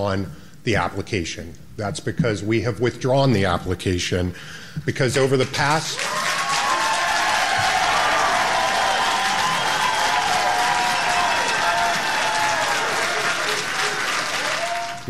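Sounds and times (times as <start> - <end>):
speech: 0.0 - 6.3
crowd applause: 6.0 - 15.0.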